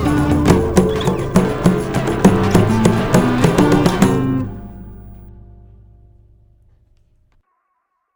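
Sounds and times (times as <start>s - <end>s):
Brazilian psychedelic jam: 0.0s - 6.0s.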